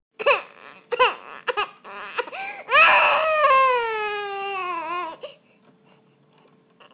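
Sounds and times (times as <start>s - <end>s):
hungry baby girl crying: 0.2s - 5.4s.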